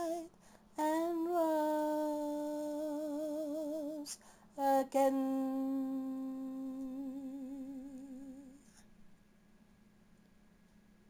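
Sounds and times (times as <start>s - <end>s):
soprano singing: 0.0s - 8.6s.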